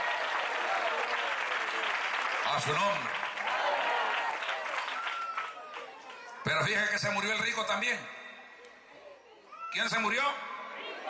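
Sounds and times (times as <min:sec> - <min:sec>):
audience applause: 0:00.0 - 0:06.4
speech: 0:02.5 - 0:03.2, 0:06.5 - 0:08.2, 0:09.7 - 0:10.5.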